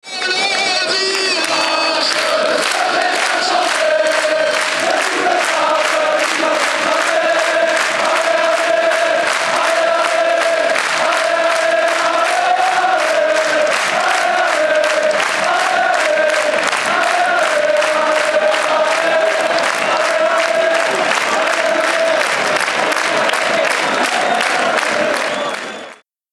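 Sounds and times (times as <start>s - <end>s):
football stadium crowd singing: 0.1s - 26.0s.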